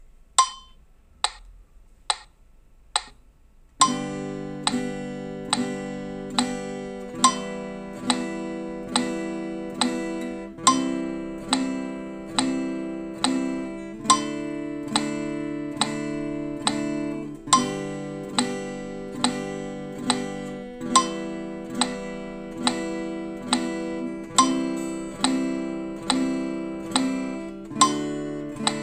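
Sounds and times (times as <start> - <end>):
easy beginner chords: 0.0 - 1.4, 3.8 - 28.8.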